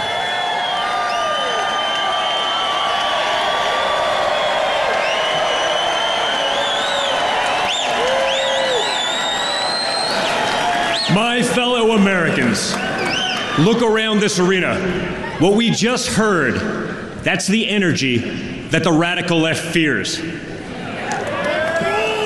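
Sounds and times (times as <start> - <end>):
convention crowd applauding and cheering: 0.0 - 14.1, 20.6 - 22.2
speech: 11.2 - 12.9, 13.6 - 20.5.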